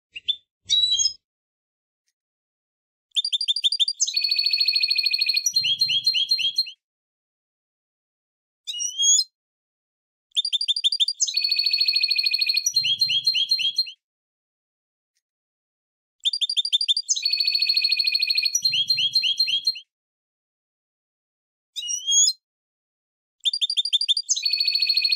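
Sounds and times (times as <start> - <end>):
finch singing: 0.1 - 1.2, 3.1 - 6.7, 10.4 - 14.0, 16.2 - 19.8, 23.4 - 25.1.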